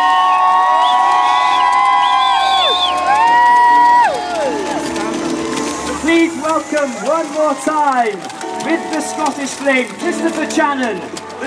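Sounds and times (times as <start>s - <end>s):
crowd cheering and whooping at a flame ceremony at Stoke Mandeville: 0.0s - 9.6s
high sliding whistle-like tones: 0.3s - 3.3s
speech: 6.8s - 11.3s.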